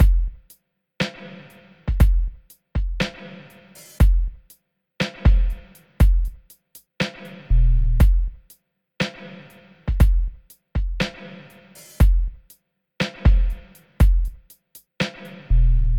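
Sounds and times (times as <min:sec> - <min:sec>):
beats: 0:00.0 - 0:08.5, 0:09.3 - 0:15.5.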